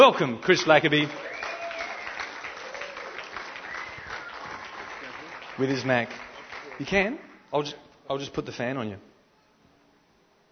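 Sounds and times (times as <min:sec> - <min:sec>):
speech: 0:00.0 - 0:01.4, 0:05.6 - 0:06.2, 0:06.8 - 0:09.1
audience applause welcoming a speaker at a Christian gathering: 0:00.0 - 0:07.3.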